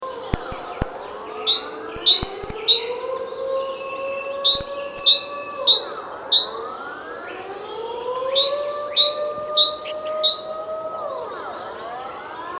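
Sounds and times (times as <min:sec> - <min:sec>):
rising siren-like whine: 0:00.0 - 0:12.5
sharp clicks: 0:00.3 - 0:01.0, 0:01.8 - 0:02.8, 0:04.5 - 0:05.6
great tit chirping: 0:00.3 - 0:03.5, 0:04.5 - 0:07.4, 0:08.1 - 0:10.4.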